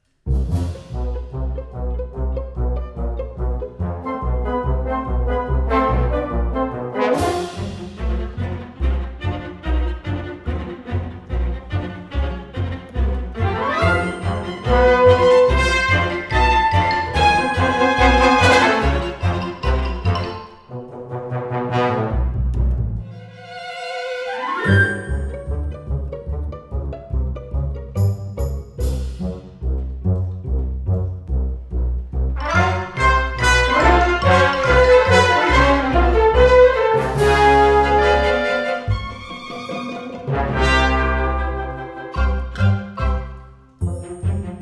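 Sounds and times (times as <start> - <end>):
live orchestra playing carnival ride music: 0.3 - 44.6.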